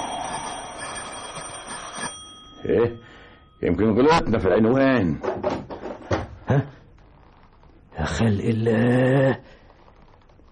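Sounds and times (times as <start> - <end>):
electric doorbell ringing at an apartment door: 0.0 - 4.3
speech: 2.6 - 5.6, 6.5 - 6.8, 8.0 - 9.6.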